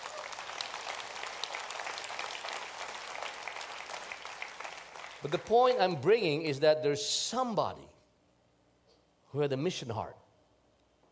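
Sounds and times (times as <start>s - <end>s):
round of applause: 0.0s - 5.8s
speech: 5.2s - 8.0s, 9.3s - 10.2s.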